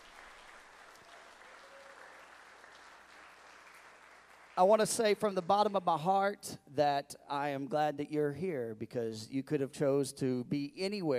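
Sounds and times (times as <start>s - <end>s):
church congregation applauding to welcome guests during a service: 0.0s - 6.3s
speech: 4.6s - 11.1s.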